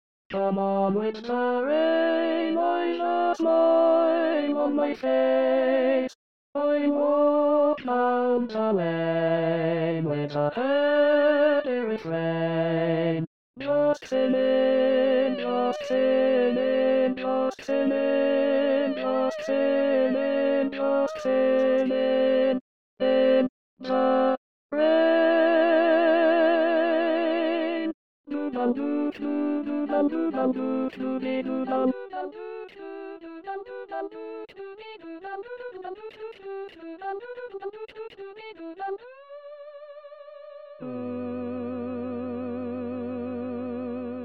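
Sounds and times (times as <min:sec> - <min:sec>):
tenor voice singing an SATB choral part: 0:00.3 - 0:36.0, 0:40.8 - 0:44.2.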